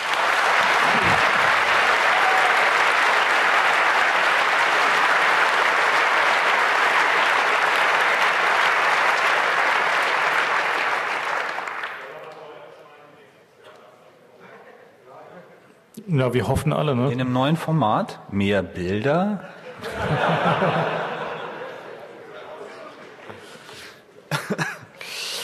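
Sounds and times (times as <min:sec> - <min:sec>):
audience applause: 0:00.0 - 0:12.5
laughter: 0:00.6 - 0:02.0, 0:19.4 - 0:23.4, 0:24.3 - 0:25.0
speech: 0:16.2 - 0:21.0.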